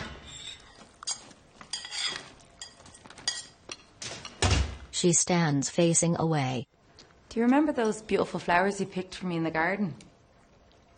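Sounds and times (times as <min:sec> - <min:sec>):
bowl scraped clean into a bin with cutlery: 0:00.2 - 0:03.9
speech: 0:05.0 - 0:06.8, 0:07.4 - 0:10.1.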